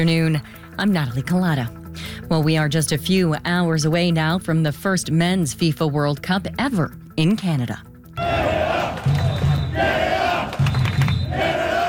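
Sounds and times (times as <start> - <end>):
speech: 0.0 - 8.3
large crowd of football fans marching, chanting: 8.2 - 11.8.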